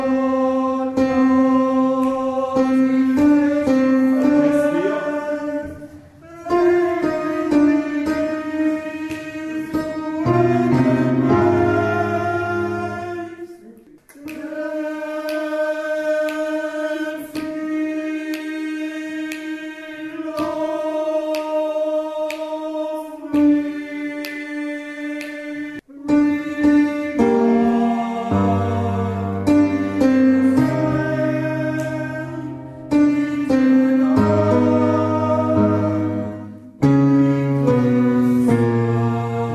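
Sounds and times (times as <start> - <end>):
tenors singing: 0.0 - 39.5.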